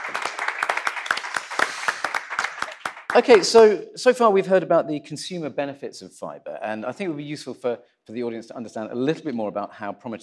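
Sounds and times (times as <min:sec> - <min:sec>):
audience applause: 0:00.0 - 0:03.8
speech: 0:03.1 - 0:10.2.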